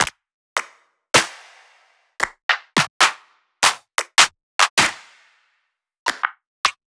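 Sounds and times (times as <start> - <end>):
hand claps: 0.0 - 1.4, 2.2 - 5.4, 6.1 - 6.8.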